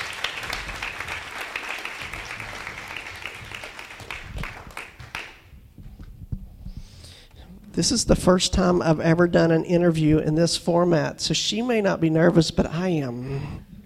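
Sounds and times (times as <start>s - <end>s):
audience applause: 0.0s - 5.5s
speech: 7.8s - 13.7s.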